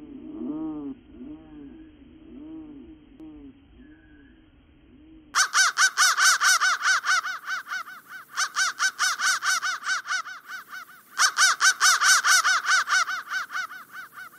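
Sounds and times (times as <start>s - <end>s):
crow cawing in harsh repeated notes: 5.4s - 14.3s.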